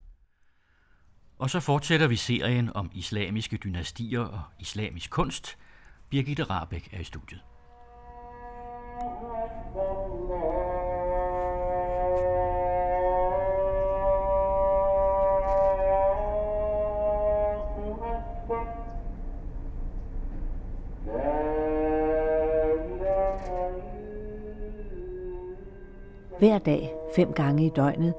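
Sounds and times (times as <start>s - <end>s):
speech: 1.4s - 7.5s, 26.4s - 28.1s
steady low hum: 4.0s - 28.1s
call to prayer from Jerusalem minaret: 6.2s - 18.9s, 21.0s - 28.1s.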